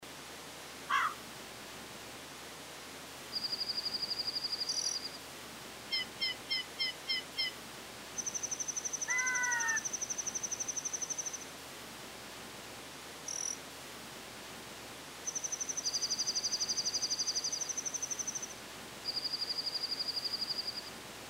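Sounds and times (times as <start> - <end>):
nature ambience: 0.0 - 21.2.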